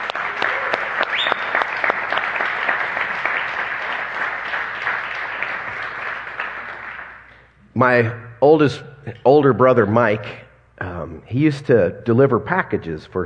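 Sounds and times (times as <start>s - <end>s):
audience applause: 0.0s - 7.3s
speech: 7.8s - 10.4s, 11.2s - 13.2s.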